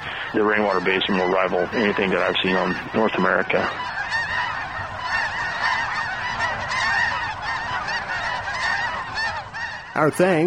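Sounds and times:
flock of birds calling: 0.0 - 10.4
speech: 0.3 - 3.9, 10.0 - 10.4.

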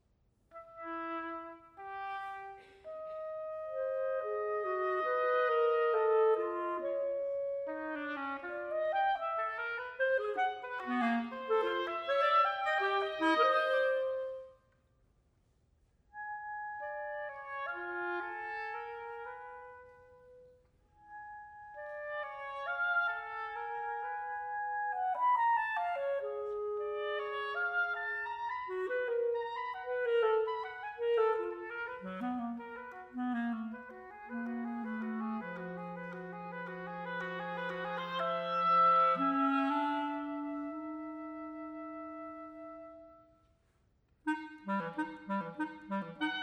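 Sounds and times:
oboe and clarinet duo moderato: 0.5 - 14.8, 16.0 - 43.6, 44.2 - 46.4.

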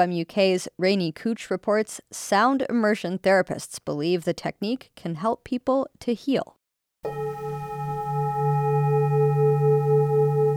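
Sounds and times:
speech: 0.0 - 7.5
Tibetan singing bowl ringing: 7.0 - 10.5.

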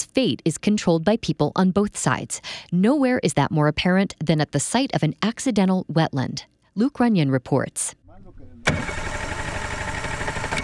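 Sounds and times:
speech: 0.1 - 8.0
small metal motorboat engine in reeds at Ciénega de Santa Clara, Sonora, Mexico: 8.4 - 10.6.

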